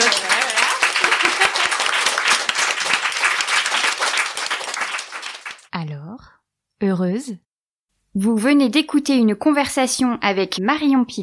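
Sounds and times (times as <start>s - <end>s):
laughter: 0.0s - 2.5s
audience applause: 0.0s - 5.7s
speech: 7.0s - 7.5s, 8.1s - 11.2s.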